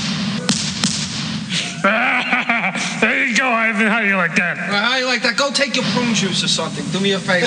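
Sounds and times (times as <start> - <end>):
low hum: 0.0 - 7.4
comedy shotgun sound effect firing: 0.4 - 2.9
laughter: 1.5 - 5.5
speech: 3.5 - 7.4.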